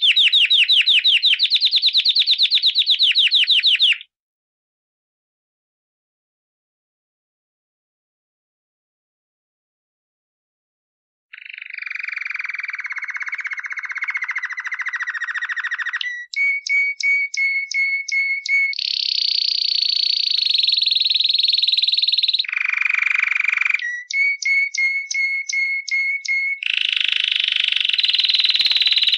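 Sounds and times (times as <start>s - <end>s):
canary giving rattling trill and high pulsed roll: 0.0s - 4.1s, 11.3s - 29.1s.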